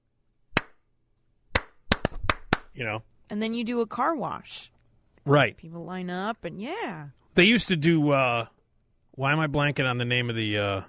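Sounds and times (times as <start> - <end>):
hand claps keeping a beat: 0.5 - 0.8, 1.5 - 2.8
speech: 2.8 - 8.6, 9.2 - 10.8.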